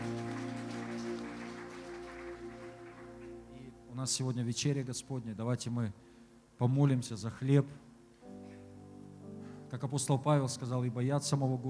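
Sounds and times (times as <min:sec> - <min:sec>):
audience applause: 0:00.0 - 0:03.7
sustained musical tones: 0:00.0 - 0:05.3
speech: 0:04.0 - 0:07.9, 0:09.7 - 0:11.6.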